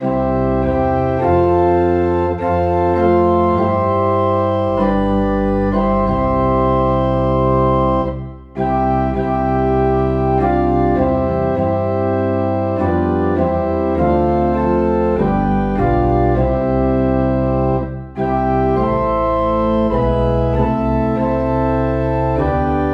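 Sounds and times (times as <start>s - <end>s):
organ in C: 0.0s - 22.9s.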